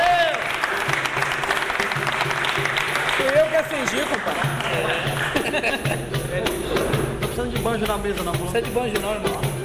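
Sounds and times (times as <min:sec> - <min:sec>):
applause: 0:00.0 - 0:05.6
laughter: 0:03.8 - 0:07.0
speech: 0:07.7 - 0:09.5.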